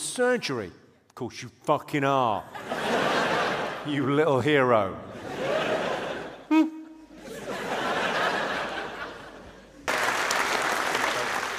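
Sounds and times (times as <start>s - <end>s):
speech: 0.2s - 2.8s, 3.8s - 5.1s
laughter: 2.5s - 4.1s, 5.1s - 9.9s
audience clapping: 9.8s - 11.5s.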